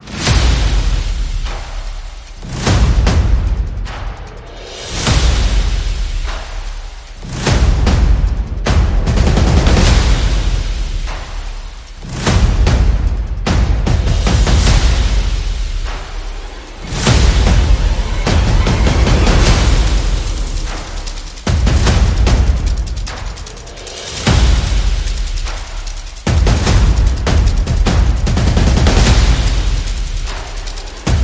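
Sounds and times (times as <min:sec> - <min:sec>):
percussion: 0:00.0 - 0:31.2
sound effects: 0:16.3 - 0:22.4.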